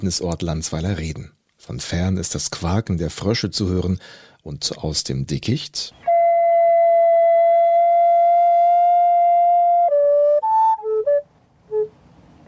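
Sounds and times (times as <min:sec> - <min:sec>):
speech: 0:00.0 - 0:06.1
recorder flute playing pure airy spherical tones: 0:06.0 - 0:11.9.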